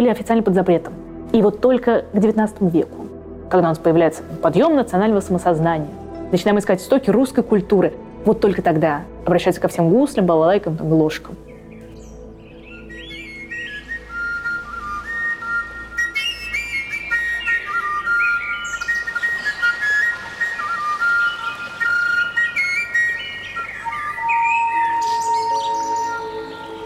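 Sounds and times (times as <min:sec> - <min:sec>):
speech: 0:00.0 - 0:11.5
kalyuka Russian overtone flute playing: 0:12.8 - 0:26.8.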